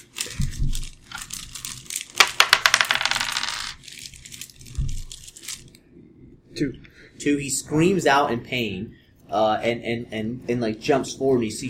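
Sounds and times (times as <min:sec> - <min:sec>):
dice clattering across a hard surface: 0:02.1 - 0:03.8
speech: 0:06.6 - 0:11.6.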